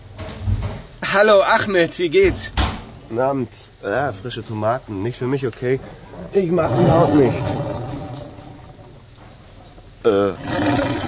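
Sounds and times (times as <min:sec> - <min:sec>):
speech: 0:01.1 - 0:07.7, 0:10.0 - 0:10.8
loud stomach growling from hunger: 0:06.0 - 0:11.0.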